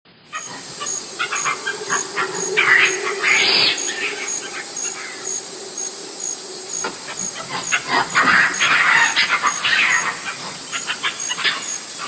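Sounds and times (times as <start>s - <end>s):
jungle monkey calling: 0.3s - 12.0s.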